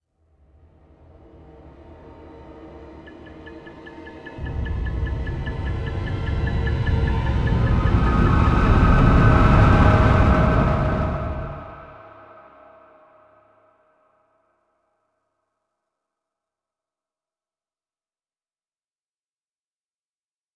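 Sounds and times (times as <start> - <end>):
transition in sound effect: 4.4 - 12.8.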